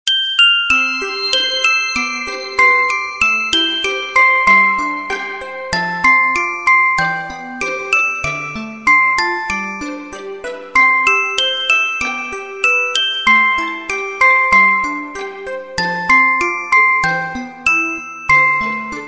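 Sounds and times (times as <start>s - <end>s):
Christmas melody: 0.5s - 19.0s.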